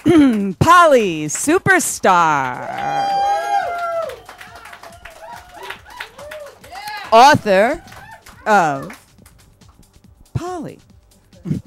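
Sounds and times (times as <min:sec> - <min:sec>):
speech: 0:00.0 - 0:03.5, 0:07.1 - 0:09.0, 0:10.6 - 0:11.6
people cheering: 0:02.3 - 0:09.0
audience applauding a featured guest on a show: 0:02.3 - 0:09.4.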